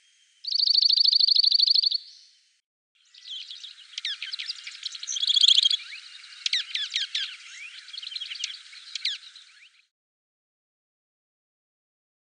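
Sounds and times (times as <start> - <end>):
dark-eyed junco bird calls: 0.4 - 2.4, 3.0 - 9.9.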